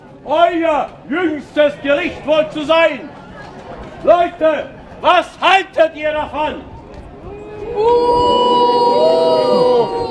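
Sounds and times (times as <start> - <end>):
speech: 0.2 - 3.2, 4.0 - 6.7, 7.7 - 8.6
crowd booing: 7.6 - 10.0.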